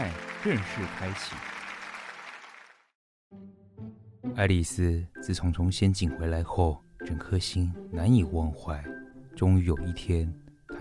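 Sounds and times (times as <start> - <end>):
audience applause: 0.0 - 2.9
speech: 0.4 - 1.5, 4.4 - 10.7.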